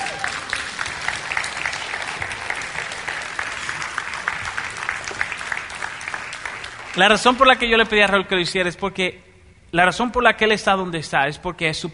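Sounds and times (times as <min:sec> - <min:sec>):
audience applause: 0:00.0 - 0:07.9
speech: 0:07.0 - 0:11.9.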